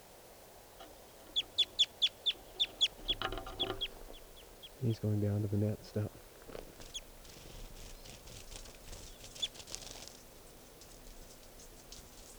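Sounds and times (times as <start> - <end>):
faint low hum: 0.2 - 12.3
speech: 4.8 - 6.3
bird wings fluttering in a mist net: 6.2 - 12.3.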